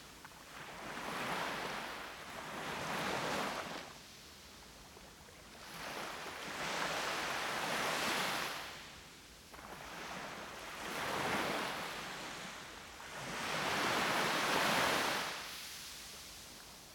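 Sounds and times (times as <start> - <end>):
waves on a beach: 0.0 - 16.9.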